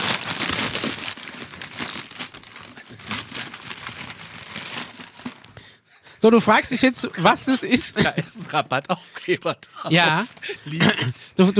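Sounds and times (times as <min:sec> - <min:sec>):
gift wrapping paper being torn open: 0:00.0 - 0:05.5
speech: 0:06.2 - 0:11.5
laughter: 0:07.1 - 0:11.5.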